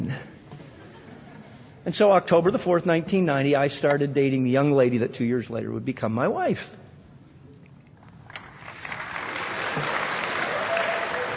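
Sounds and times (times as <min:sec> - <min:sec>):
speech: 0:01.8 - 0:06.8
audience applause: 0:08.6 - 0:11.3.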